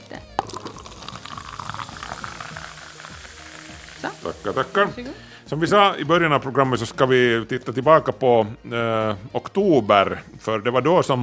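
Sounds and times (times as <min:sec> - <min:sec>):
fizzy drink pouring into glasses: 0:00.3 - 0:05.0
speech: 0:04.2 - 0:11.2.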